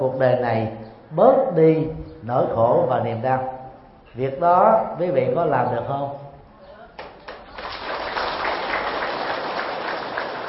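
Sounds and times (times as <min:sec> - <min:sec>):
speech: 0:00.0 - 0:06.2
audience applauding: 0:07.0 - 0:10.4.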